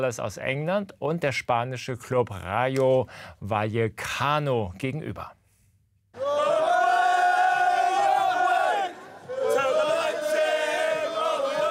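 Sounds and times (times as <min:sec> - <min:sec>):
speech: 0:00.0 - 0:05.4
fans singing a chant in a stadium: 0:06.2 - 0:11.7.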